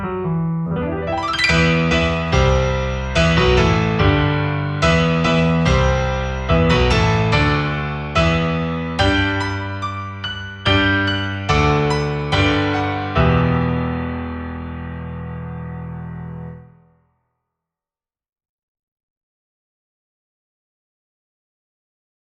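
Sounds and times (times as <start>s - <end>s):
piano interlude: 0.0s - 17.0s.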